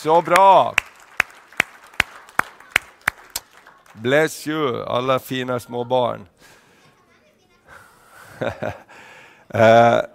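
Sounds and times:
speech: 0.0s - 0.9s, 4.0s - 6.3s, 8.4s - 8.9s, 9.5s - 10.1s
applause for the children: 0.0s - 4.6s
laughter: 6.8s - 10.0s.

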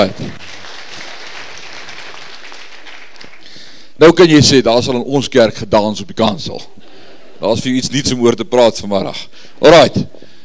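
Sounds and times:
speech: 0.0s - 0.4s, 4.0s - 6.8s, 7.4s - 10.2s
audience clapping: 0.0s - 3.9s.

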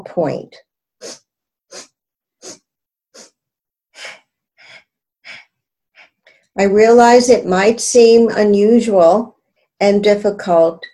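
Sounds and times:
speech: 0.0s - 1.2s, 6.6s - 10.9s
rhythmic sniffing inhalations in equal parts: 1.0s - 3.4s, 4.0s - 6.5s.

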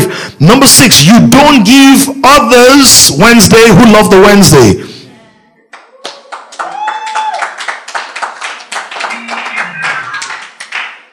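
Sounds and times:
speech: 0.4s - 4.9s
audience clapping: 5.7s - 11.1s.

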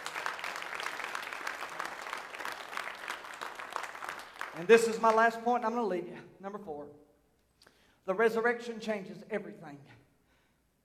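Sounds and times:
audience applauding: 0.0s - 5.2s
speech: 4.6s - 7.1s, 8.0s - 10.0s.

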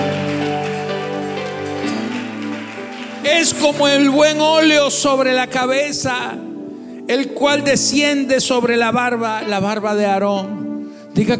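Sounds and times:
audience applause: 0.0s - 5.2s
speech: 3.3s - 6.5s, 7.1s - 11.3s.

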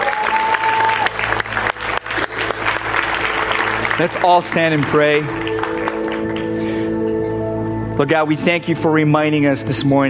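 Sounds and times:
audience clapping: 0.0s - 6.9s
speech: 4.0s - 6.7s, 8.0s - 10.0s.

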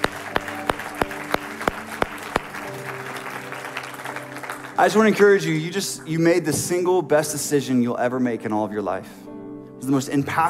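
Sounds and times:
audience applauding: 0.0s - 5.5s
speech: 4.8s - 9.2s, 9.8s - 10.4s.

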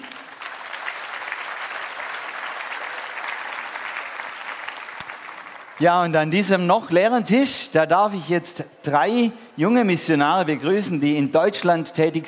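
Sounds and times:
audience applause: 0.0s - 5.9s
speech: 5.8s - 12.2s.

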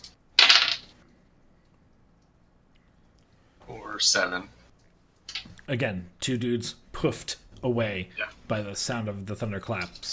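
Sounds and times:
two eight-sided dice rolled and clattering: 0.4s - 1.0s
speech: 3.7s - 4.6s, 5.7s - 10.1s.

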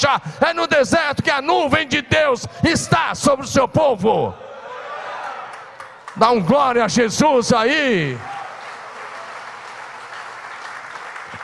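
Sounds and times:
speech: 0.0s - 4.5s, 6.2s - 8.5s
audience applause: 5.2s - 6.2s, 8.1s - 11.4s.

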